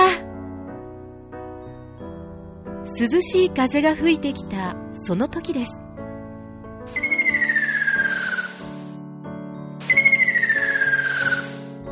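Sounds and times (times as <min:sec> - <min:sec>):
speech: 0:02.9 - 0:05.8
ruddy kingfisher call: 0:06.9 - 0:08.8, 0:09.8 - 0:11.7.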